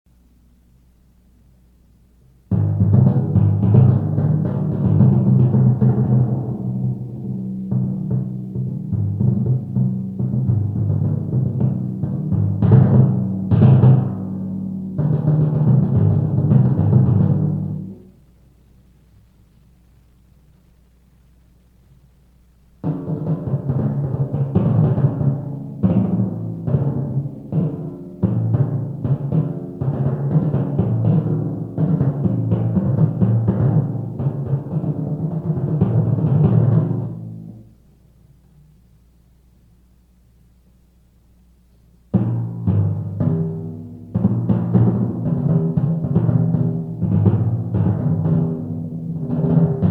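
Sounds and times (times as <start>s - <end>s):
timpani: 2.5s - 18.2s, 22.8s - 38.0s, 42.1s - 49.8s.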